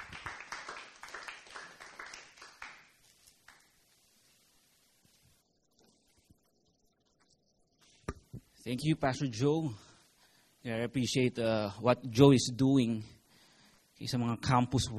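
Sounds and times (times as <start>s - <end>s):
brief applause from a small audience: 0.0s - 3.8s
speech: 8.7s - 9.9s, 10.6s - 13.2s, 14.0s - 14.9s.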